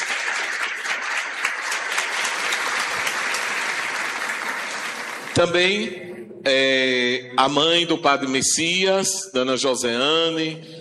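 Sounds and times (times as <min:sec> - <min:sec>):
audience applause: 0:00.0 - 0:05.9
speech: 0:05.4 - 0:10.8.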